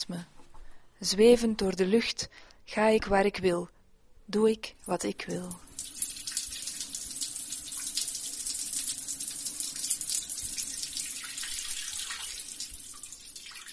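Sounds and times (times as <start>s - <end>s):
speech: 0.0s - 0.3s, 1.0s - 5.7s
hands being washed under a running tap: 5.7s - 13.7s.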